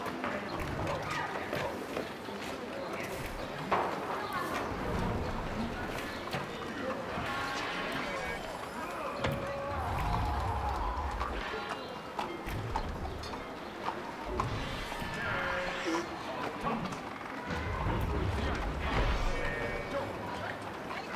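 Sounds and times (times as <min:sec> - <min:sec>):
courtyard ambience: 0:00.0 - 0:21.1.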